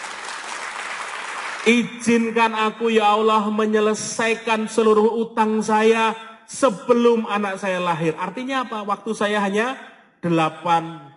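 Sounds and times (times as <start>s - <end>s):
audience applause: 0.0s - 1.7s
speech: 1.6s - 11.1s.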